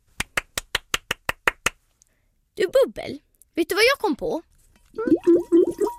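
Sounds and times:
single pair of hands clapping: 0:00.1 - 0:01.8
speech: 0:02.6 - 0:05.9.

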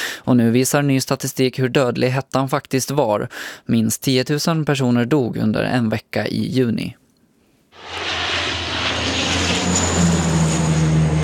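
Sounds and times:
speech: 0:00.3 - 0:07.0
airplane dumping water on forest fires: 0:07.8 - 0:11.2.

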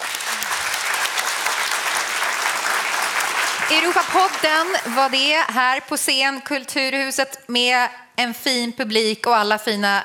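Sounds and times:
audience applause: 0:00.0 - 0:05.5
speech: 0:03.7 - 0:10.0.

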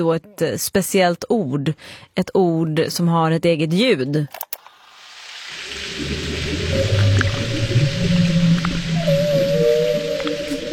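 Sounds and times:
speech: 0:00.0 - 0:04.4, 0:06.0 - 0:06.3
bacon frying in a pan: 0:04.7 - 0:10.4
humpback whale song: 0:05.5 - 0:10.7.

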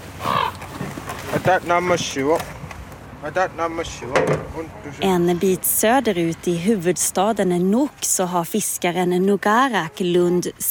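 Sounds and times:
ravens croaking overhead: 0:00.0 - 0:01.3
speech: 0:01.4 - 0:02.6, 0:03.2 - 0:10.6.

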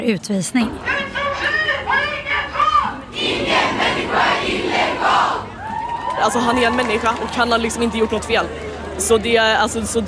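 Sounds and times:
speech: 0:00.0 - 0:01.5, 0:06.2 - 0:10.0
large crowd of students chanting in unison: 0:00.7 - 0:05.6
many overlapping voices of students calling out: 0:00.7 - 0:08.9.

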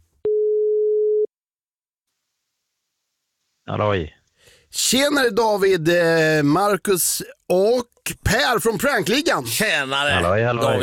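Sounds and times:
telephone ringing tone after dialling a number: 0:00.3 - 0:01.3
speech: 0:03.7 - 0:10.8.

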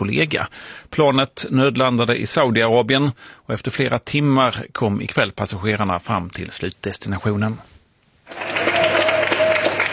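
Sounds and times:
speech: 0:00.0 - 0:07.7
waiting relatives applauding arriving passengers at Ben Gurion airport in Tel Aviv: 0:08.3 - 0:09.9.

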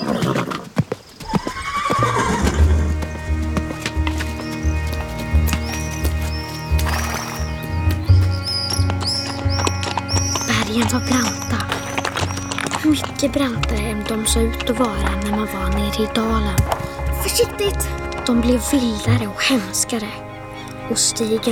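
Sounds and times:
birds chirping faintly: 0:00.0 - 0:00.2, 0:01.0 - 0:21.5
horse neighing as a rider sets off: 0:00.0 - 0:03.6, 0:08.4 - 0:13.3
hooves clip-clopping at a walking rhythm: 0:00.0 - 0:21.5
speech: 0:13.2 - 0:16.8, 0:17.4 - 0:20.3, 0:20.9 - 0:21.5.

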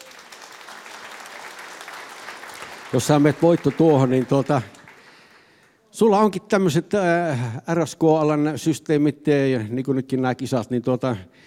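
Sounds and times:
audience applause at a competition event: 0:00.0 - 0:05.7
speech: 0:02.9 - 0:04.8, 0:06.0 - 0:11.4.

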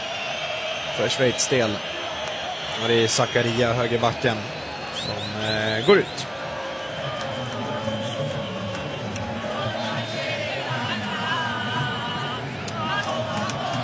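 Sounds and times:
crowd roar: 0:00.0 - 0:13.8
speech: 0:01.0 - 0:02.0, 0:02.8 - 0:06.3
football supporters singing a chant: 0:03.4 - 0:13.8.

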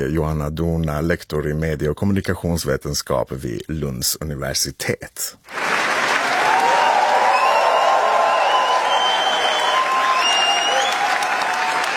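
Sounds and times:
speech: 0:00.0 - 0:05.9
standing ovation applause at film premiere: 0:05.5 - 0:11.9
whistles and cheers: 0:06.1 - 0:11.9.

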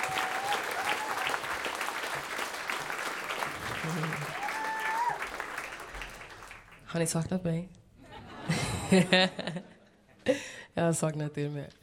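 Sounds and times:
audience applause: 0:00.0 - 0:06.8
speech: 0:06.9 - 0:07.8, 0:08.9 - 0:09.7, 0:10.3 - 0:11.8
laughter: 0:08.0 - 0:09.9.

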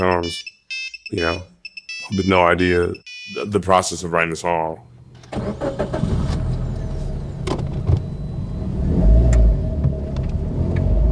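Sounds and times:
speech: 0:00.0 - 0:01.5, 0:02.1 - 0:06.4
car engine rumble heard from inside a car: 0:04.9 - 0:11.1.

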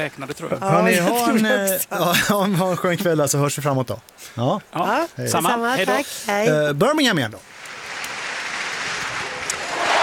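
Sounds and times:
speech: 0:00.0 - 0:07.5
stadium crowd cheering: 0:09.4 - 0:10.0.

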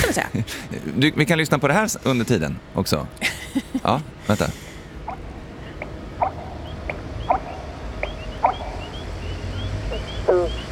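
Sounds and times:
speech: 0:00.1 - 0:04.6
Eurasian bittern booming call: 0:05.0 - 0:10.6.

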